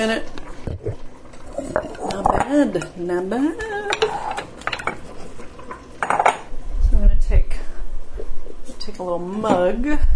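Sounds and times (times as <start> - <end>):
speech: 0.0 - 0.4, 2.5 - 4.0, 9.0 - 10.1
bowls clattering and clinking as they are taken out for pasta: 1.4 - 6.5.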